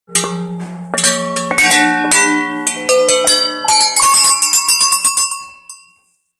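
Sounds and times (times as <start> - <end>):
small bells jingling in a museum: 1.1 - 6.1.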